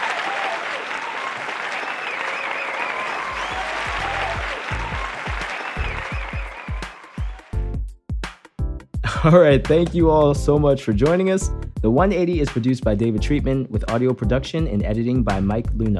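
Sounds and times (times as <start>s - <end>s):
round of applause: 0.0s - 7.7s
speech: 9.2s - 15.9s.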